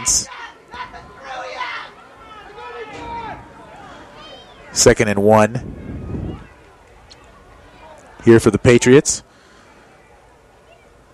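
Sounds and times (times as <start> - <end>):
speech: 0.0 - 0.4, 4.8 - 5.8, 8.2 - 9.3
excited football fans yelling and cheering: 0.0 - 11.0.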